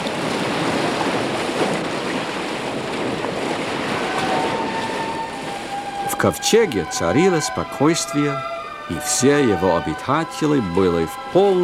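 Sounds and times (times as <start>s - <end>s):
ocean surf: 0.0s - 11.6s
wind: 0.0s - 11.6s
speech: 6.2s - 11.6s.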